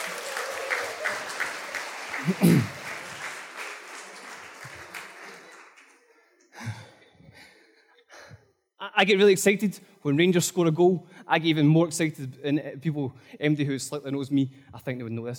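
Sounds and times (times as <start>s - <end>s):
audience applause: 0.0s - 6.8s
speech: 2.2s - 2.8s, 9.0s - 15.3s.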